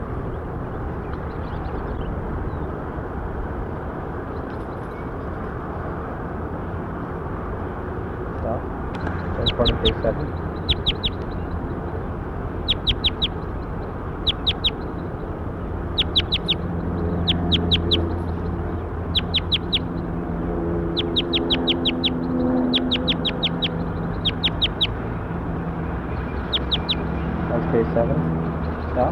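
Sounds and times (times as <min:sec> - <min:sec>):
low rumbling background: 0:00.0 - 0:29.1
recorded bird calls: 0:09.0 - 0:11.9, 0:12.6 - 0:25.0, 0:26.1 - 0:27.4
speech: 0:09.8 - 0:10.4.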